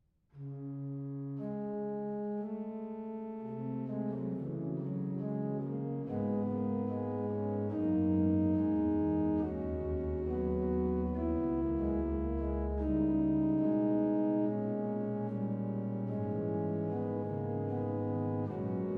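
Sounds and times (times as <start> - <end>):
organ improvisation: 0.9 - 18.9.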